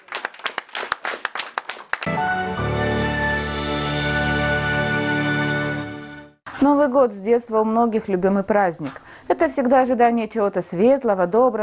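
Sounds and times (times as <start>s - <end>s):
concert audience applauding enthusiastically: 0.0s - 2.6s
sustained musical chord: 2.1s - 6.4s
speech: 6.6s - 11.6s.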